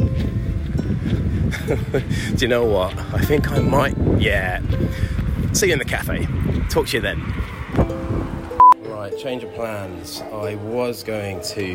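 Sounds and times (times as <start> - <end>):
gust of wind buffeting the microphone: 0.0 - 8.6
speech: 1.7 - 7.5, 9.1 - 11.7.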